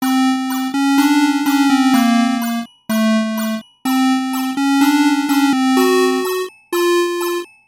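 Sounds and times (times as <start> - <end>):
anxious spooky music: 0.0 - 7.5.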